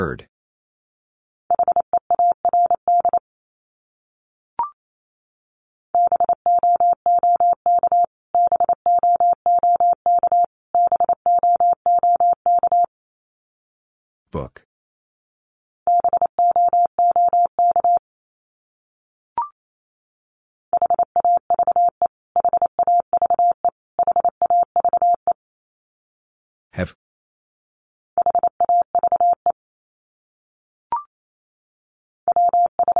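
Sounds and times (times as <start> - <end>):
speech: 0.0 - 0.3, 14.3 - 14.6
Morse code beeps: 1.6 - 3.2, 6.0 - 12.9, 15.9 - 18.0, 20.8 - 25.3, 28.2 - 29.6, 32.3 - 32.9.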